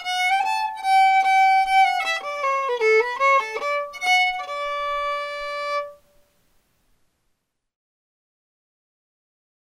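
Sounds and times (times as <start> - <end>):
fiddle playing a reel: 0.0 - 6.0.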